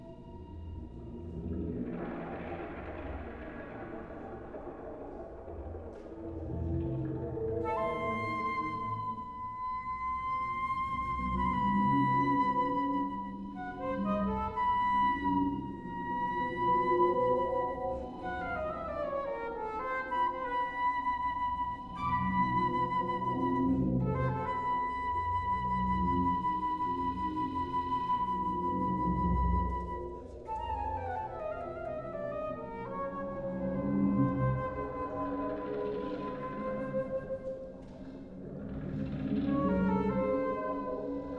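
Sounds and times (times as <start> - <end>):
flute piece on magnetic tape: 0.0 - 41.3.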